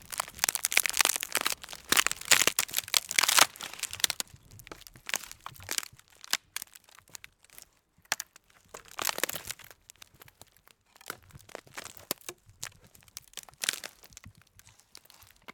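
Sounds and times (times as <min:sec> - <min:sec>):
branch cracking: 0:00.0 - 0:14.2.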